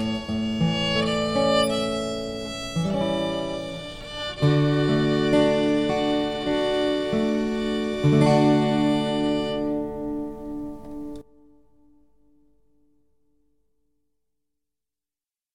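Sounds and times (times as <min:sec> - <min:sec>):
slow fiddle air: 0:00.0 - 0:10.5.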